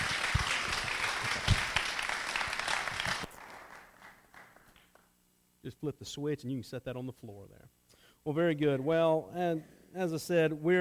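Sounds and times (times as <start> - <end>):
audience applause: 0.0 - 4.8
speech: 5.7 - 10.7.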